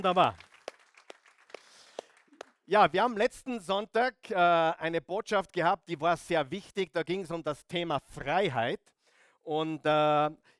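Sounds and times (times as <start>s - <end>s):
speech: 0.0s - 0.5s, 2.7s - 10.5s
short applause from the audience: 0.0s - 2.6s.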